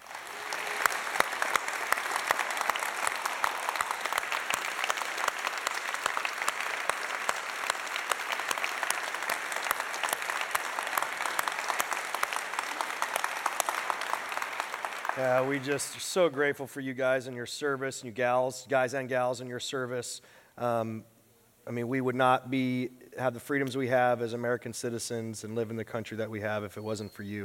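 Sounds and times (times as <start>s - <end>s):
audience applause for veterans: 0.0s - 16.2s
speech: 15.2s - 21.1s, 21.7s - 27.4s.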